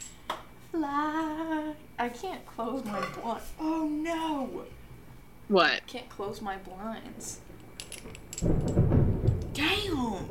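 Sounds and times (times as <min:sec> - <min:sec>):
speech: 0:00.7 - 0:04.8, 0:05.5 - 0:08.7
thunder: 0:08.4 - 0:10.2.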